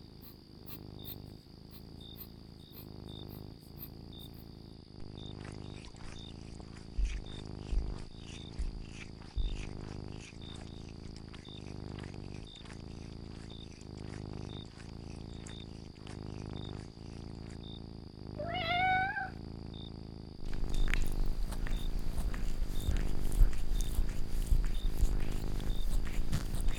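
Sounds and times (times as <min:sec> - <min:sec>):
domestic cat purring: 0:00.0 - 0:26.7
domestic cat meowing: 0:18.4 - 0:19.4.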